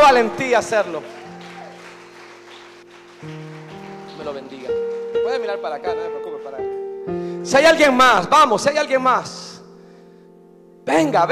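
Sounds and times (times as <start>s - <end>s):
audience applause: 0.0s - 5.6s
speech: 0.1s - 1.2s, 4.2s - 9.5s, 10.9s - 11.2s.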